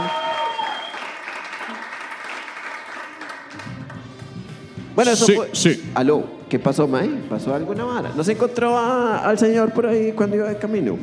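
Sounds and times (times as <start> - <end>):
audience applause: 0.0 - 3.9
speech: 5.0 - 11.0.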